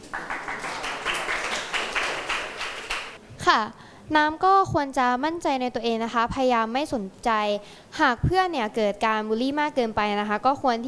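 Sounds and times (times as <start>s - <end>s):
students clapping for a classmate: 0.0s - 3.2s
speech: 3.5s - 10.8s.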